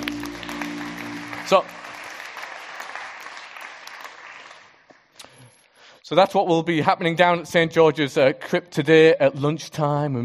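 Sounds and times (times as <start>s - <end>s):
audience clapping: 0.0s - 5.1s
speech: 1.5s - 1.9s, 6.1s - 10.2s.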